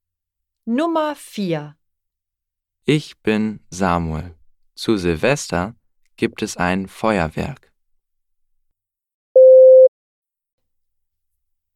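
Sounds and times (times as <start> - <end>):
speech: 0.7 - 1.8, 2.8 - 7.7
telephone signal beep: 9.4 - 9.9.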